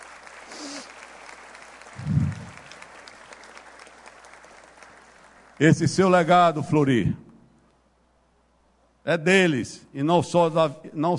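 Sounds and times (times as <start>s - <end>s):
audience applause: 0.0s - 5.8s
speech: 5.6s - 7.2s, 9.0s - 11.1s.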